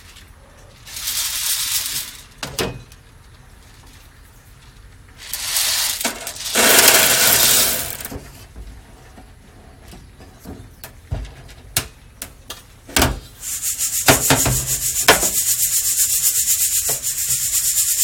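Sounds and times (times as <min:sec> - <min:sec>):
Guatemala SHB coffee beans roasting: 0:00.8 - 0:02.4, 0:05.2 - 0:08.4, 0:13.4 - 0:18.0.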